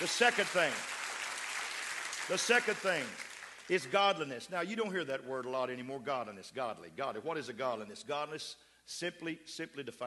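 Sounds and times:
speech: 0.0 - 1.0, 2.3 - 10.0
crowd clapping: 0.0 - 4.2.

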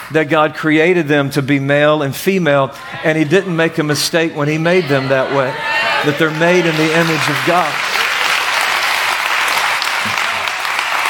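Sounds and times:
speech: 0.1 - 7.9
audience clapping: 6.0 - 11.0.

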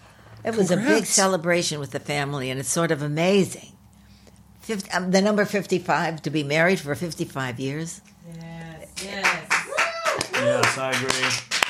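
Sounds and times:
speech: 0.4 - 3.8, 4.7 - 9.2, 10.5 - 11.5
clapping: 9.0 - 11.6.

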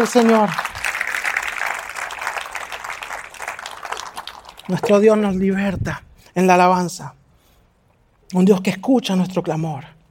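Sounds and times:
speech: 0.0 - 0.8, 4.7 - 7.2, 8.3 - 10.0
audience applause: 0.0 - 5.0.

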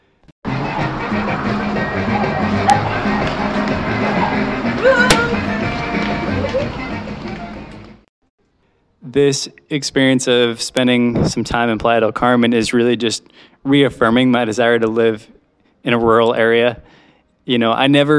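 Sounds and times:
city traffic rumble: 0.5 - 8.0
speech: 9.2 - 18.1.

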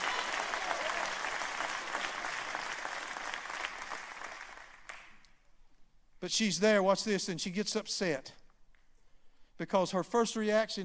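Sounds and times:
audience clapping: 0.0 - 5.4
speech: 6.2 - 8.4, 9.6 - 10.8.

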